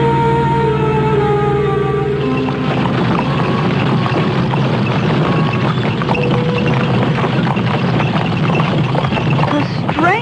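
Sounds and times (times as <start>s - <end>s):
covered wagon rolling across countryside: 0.1s - 10.2s
hoof-like clopping: 2.0s - 10.2s.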